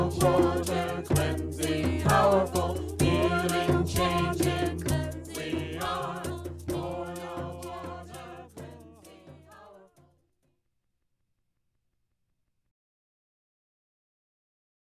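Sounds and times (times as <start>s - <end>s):
chanting: 0.0s - 10.0s.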